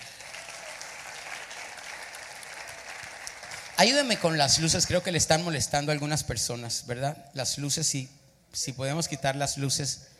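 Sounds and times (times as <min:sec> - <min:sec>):
audience applause: 0:00.0 - 0:05.1
speech: 0:03.8 - 0:10.1.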